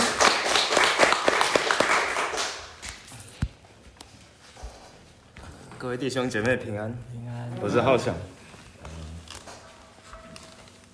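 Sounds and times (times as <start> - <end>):
applause: 0.0 - 2.8
speech: 5.8 - 8.4.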